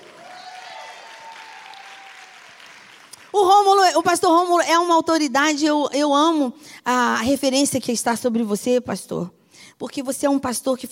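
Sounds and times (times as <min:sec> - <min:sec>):
church audience applause: 0:00.0 - 0:03.3
speech: 0:03.3 - 0:10.9.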